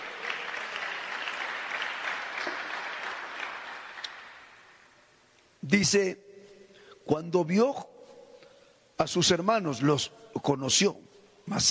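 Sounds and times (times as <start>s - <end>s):
audience applause: 0.0s - 4.6s
speech: 5.7s - 6.2s, 7.1s - 7.9s, 9.0s - 11.6s.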